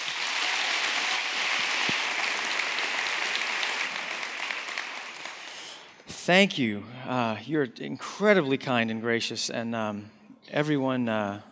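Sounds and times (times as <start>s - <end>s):
audience applause welcoming actor Kirk Cameron: 0.0s - 6.0s
speech: 6.3s - 11.4s.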